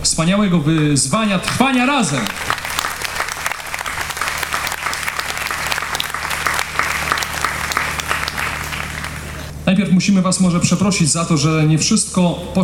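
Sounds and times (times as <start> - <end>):
speech: 0.0 - 2.6, 9.7 - 12.6
thunderous audience applause: 1.3 - 9.5.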